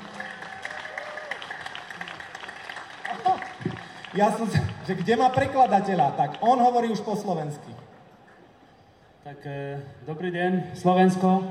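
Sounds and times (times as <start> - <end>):
audience applause: 0.0 - 7.0
speech: 4.2 - 7.9, 9.3 - 11.5.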